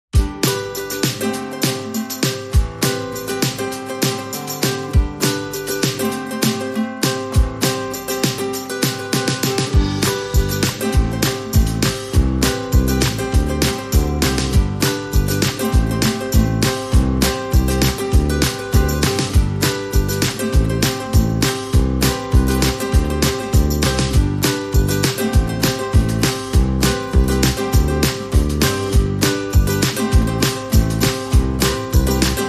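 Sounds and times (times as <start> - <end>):
festive shuffle music: 0.1 - 32.4.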